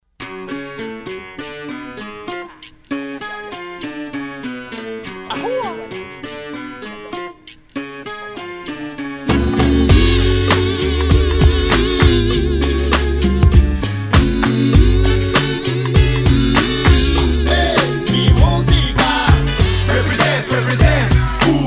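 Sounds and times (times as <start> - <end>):
cha cha cha music: 4.7 - 7.7, 8.4 - 21.6.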